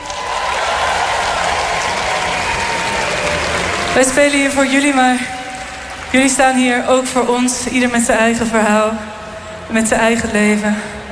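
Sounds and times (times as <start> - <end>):
festival crowd applauding: 0.0 - 8.5
speech: 4.0 - 5.4, 6.1 - 11.0.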